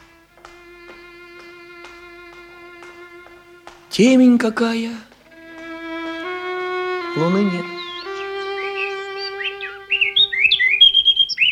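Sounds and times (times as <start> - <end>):
speech: 4.0 - 5.1, 7.2 - 7.8
mockingbird singing: 6.4 - 11.5.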